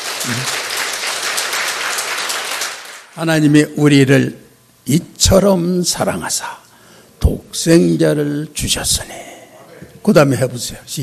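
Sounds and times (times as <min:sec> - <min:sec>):
audience applause: 0:00.0 - 0:03.1
speech: 0:00.2 - 0:00.6, 0:03.2 - 0:06.6, 0:07.2 - 0:09.3, 0:10.0 - 0:11.0.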